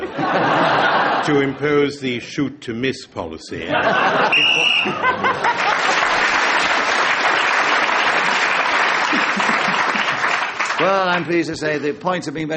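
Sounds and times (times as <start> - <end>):
laughter: 0.0 - 1.6, 3.6 - 10.5
speech: 1.3 - 6.0, 10.8 - 12.5
crowd applause: 4.1 - 11.9
shrill whistle blast: 4.3 - 5.0.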